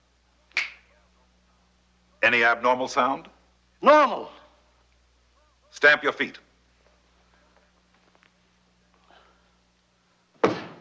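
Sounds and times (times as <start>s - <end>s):
hum: 0.0s - 10.8s
finger snap: 0.5s - 0.9s
speech: 2.3s - 4.4s, 5.7s - 6.4s.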